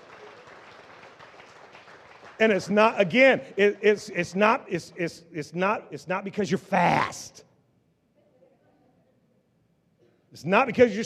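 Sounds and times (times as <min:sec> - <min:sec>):
audience clapping: 0:00.0 - 0:05.2
speech: 0:02.4 - 0:07.5, 0:10.3 - 0:11.0.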